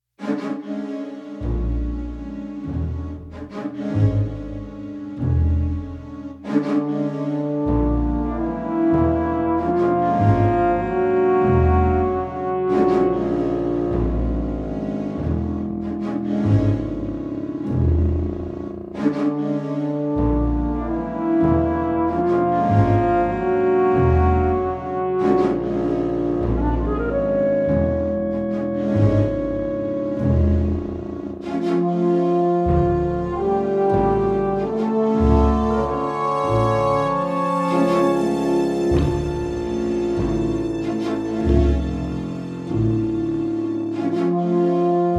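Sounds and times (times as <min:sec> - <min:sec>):
slow dramatic music: 0:00.2 - 0:45.1.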